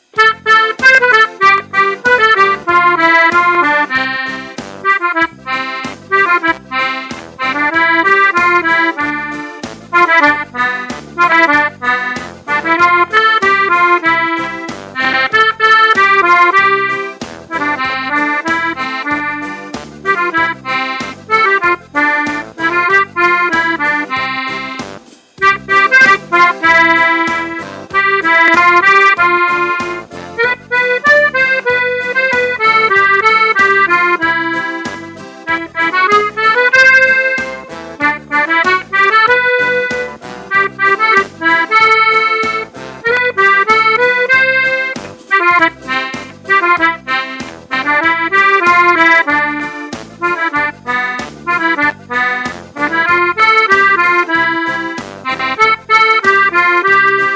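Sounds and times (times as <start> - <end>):
polka music: 0.0 - 57.3.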